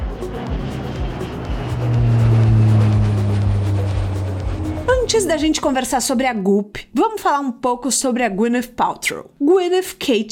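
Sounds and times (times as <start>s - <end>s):
small jet plane engine roaring on takeoff: 0.0s - 6.2s
speech: 5.1s - 10.2s.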